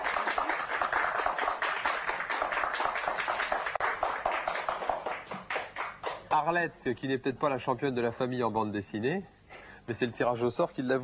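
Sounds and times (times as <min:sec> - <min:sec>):
audience clapping: 0:00.0 - 0:06.5
speech: 0:06.3 - 0:11.0.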